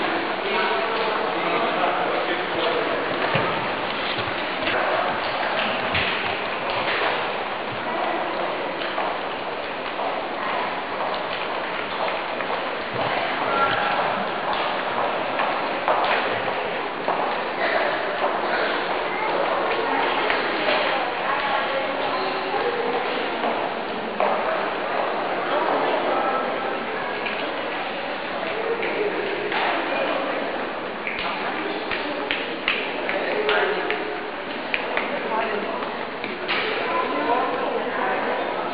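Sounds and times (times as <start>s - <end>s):
Senate foyer ambience: 0.0s - 38.7s.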